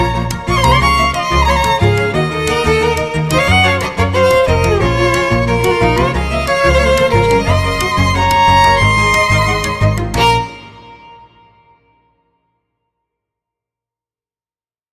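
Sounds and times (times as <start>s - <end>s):
modern heroic cellos: 0.0s - 11.3s.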